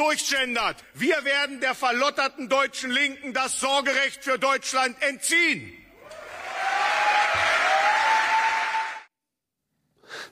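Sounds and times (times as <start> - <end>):
speech: 0.0 - 5.8
crowd cheering: 6.0 - 9.1
applause: 6.3 - 9.1.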